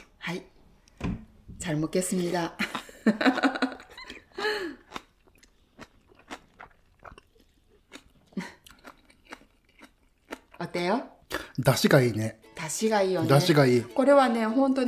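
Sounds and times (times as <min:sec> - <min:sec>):
speech: 0:00.2 - 0:00.5, 0:01.6 - 0:03.7, 0:10.8 - 0:14.8
laughter: 0:02.9 - 0:04.3
crunchy chewing while eating bean sprout kimchi soup: 0:04.8 - 0:10.6.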